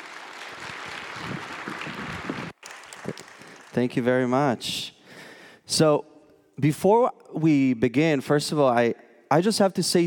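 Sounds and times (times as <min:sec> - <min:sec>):
audience applause: 0:00.0 - 0:03.8
speech: 0:03.8 - 0:05.0, 0:05.7 - 0:10.0.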